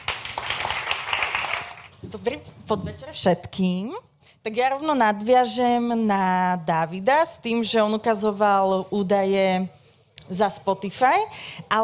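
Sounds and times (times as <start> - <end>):
audience applause: 0.0 - 1.9
speech: 2.1 - 11.8.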